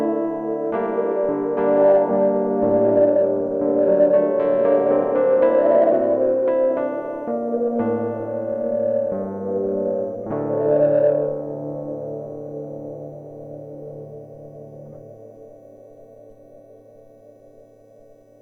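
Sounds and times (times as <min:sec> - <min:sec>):
piano on an audio effects device: 0:00.0 - 0:18.4.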